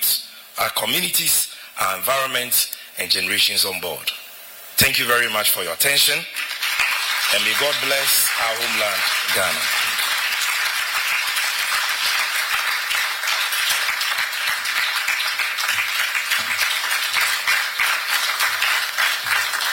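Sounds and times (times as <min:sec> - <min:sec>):
speech: 0:00.6 - 0:04.2, 0:04.8 - 0:06.4, 0:07.3 - 0:09.8
crowd applauding: 0:06.3 - 0:19.7.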